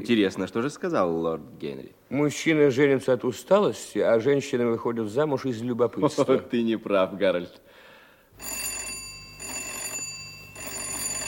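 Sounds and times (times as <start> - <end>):
speech: 0.0 - 7.8
electric doorbell ringing insistently: 8.4 - 11.2.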